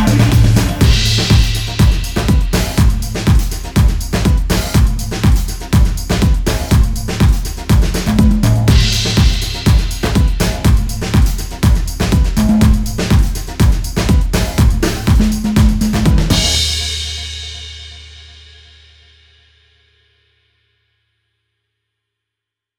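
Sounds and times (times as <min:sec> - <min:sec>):
batucada drumming mix: 0:00.0 - 0:17.9.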